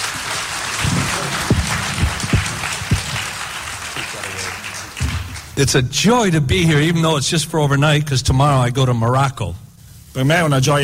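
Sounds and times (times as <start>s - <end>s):
audience applause: 0.0s - 5.6s
speech: 5.6s - 9.6s, 10.2s - 10.8s.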